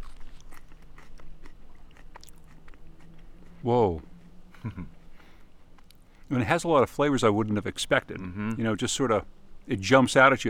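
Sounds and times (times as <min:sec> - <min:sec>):
person chewing a freshly torn leaf of wild lettuce: 0:00.0 - 0:06.3
speech: 0:03.6 - 0:05.0, 0:06.3 - 0:10.4.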